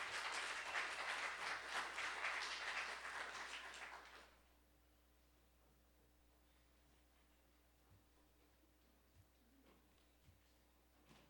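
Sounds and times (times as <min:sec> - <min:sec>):
audience applauding: 0:00.0 - 0:04.4.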